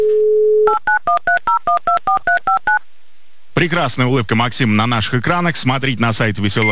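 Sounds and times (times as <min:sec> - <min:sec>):
telephone dialing and ringing tones: 0:00.2 - 0:02.8
speech: 0:03.6 - 0:06.7.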